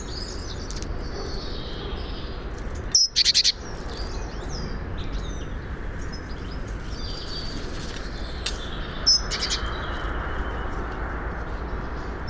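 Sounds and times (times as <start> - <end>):
great tit calling: 0.0 - 10.7
other birds twittering: 0.0 - 12.2.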